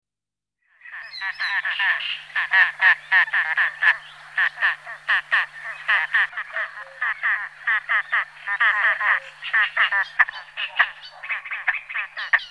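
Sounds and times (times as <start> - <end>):
great crested grebe Podiceps cristatus croaking calls: 1.2 - 12.5.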